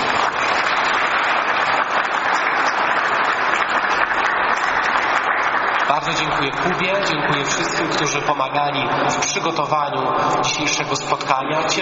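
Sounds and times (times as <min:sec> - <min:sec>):
applause: 0:00.0 - 0:08.5
speech: 0:05.9 - 0:11.8.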